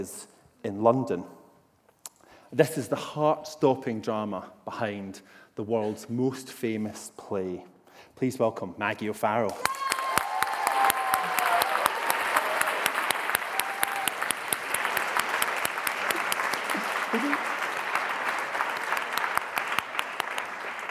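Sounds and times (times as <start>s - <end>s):
speech: 0.0s - 1.4s, 2.5s - 9.8s
whoops and cheers: 9.6s - 14.4s
sustained applause from a large audience: 9.6s - 20.8s.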